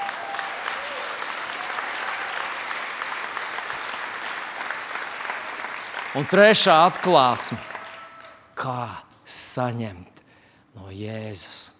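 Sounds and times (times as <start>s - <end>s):
audience applause: 0.0s - 8.4s
speech: 6.2s - 7.7s, 8.6s - 10.1s, 10.8s - 11.7s.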